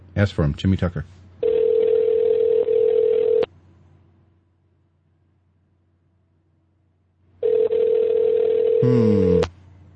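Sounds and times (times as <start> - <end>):
speech: 0.2 - 1.2, 8.8 - 9.4
telephone ringing tone over a call line: 1.4 - 3.5, 7.4 - 8.9.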